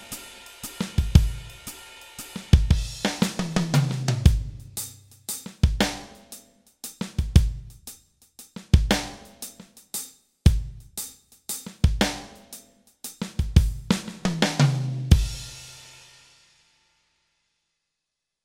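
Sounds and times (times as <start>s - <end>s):
improvised music: 2.4s - 15.6s.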